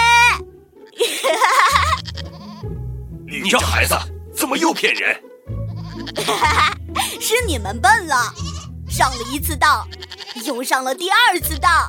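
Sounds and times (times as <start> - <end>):
laughter: 1.0 - 2.1, 3.3 - 5.2, 6.0 - 7.6
sheep bleating: 1.7 - 2.7, 4.6 - 6.6, 8.2 - 10.6
speech: 3.4 - 5.3, 6.0 - 11.8.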